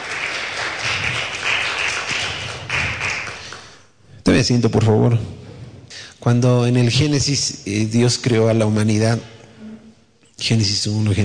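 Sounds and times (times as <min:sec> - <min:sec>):
audience applause: 0:00.0 - 0:03.8
speech: 0:04.2 - 0:05.4, 0:06.2 - 0:09.4, 0:10.4 - 0:11.2.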